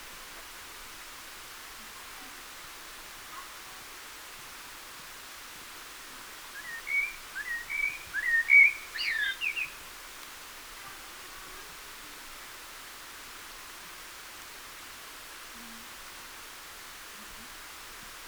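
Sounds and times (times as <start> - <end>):
common blackbird singing: 6.6 - 9.8.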